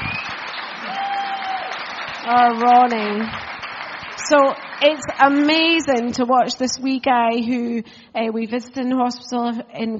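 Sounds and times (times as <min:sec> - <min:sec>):
round of applause: 0:00.0 - 0:06.1
speech: 0:02.3 - 0:03.5, 0:04.2 - 0:09.9.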